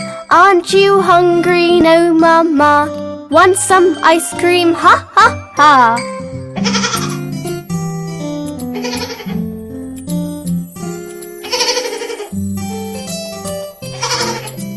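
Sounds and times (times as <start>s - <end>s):
speech: 0.3s - 6.8s
baby goat bleating: 6.6s - 7.2s, 8.7s - 9.4s, 11.5s - 12.3s, 13.9s - 14.6s.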